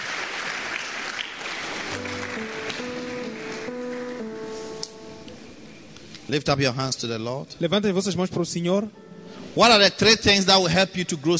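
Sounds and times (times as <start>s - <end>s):
audience clapping: 0.0s - 4.6s
sustained keyboard chords: 1.8s - 6.4s, 7.8s - 10.6s
speech: 6.3s - 9.0s, 9.6s - 11.3s.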